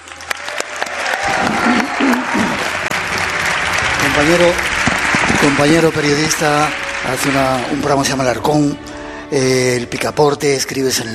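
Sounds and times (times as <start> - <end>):
audience applause: 0.0 - 8.8
speech: 4.2 - 11.1.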